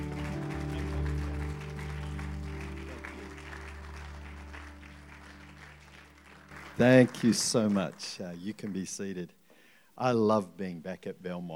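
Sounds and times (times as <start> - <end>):
audience applause: 0.0 - 8.6
speech: 6.8 - 9.4, 10.0 - 11.5.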